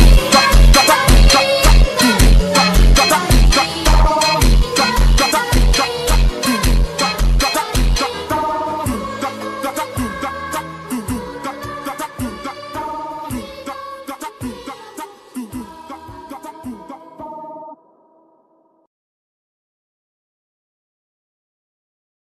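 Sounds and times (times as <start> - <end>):
slowed phonk music: 0.0 - 17.7.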